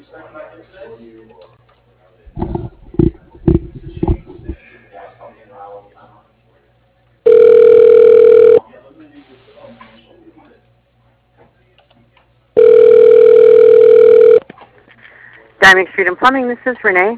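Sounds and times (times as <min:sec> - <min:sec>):
telephone line ringing while call connects: 0:07.3 - 0:08.6, 0:12.6 - 0:14.4
speech: 0:15.6 - 0:17.1.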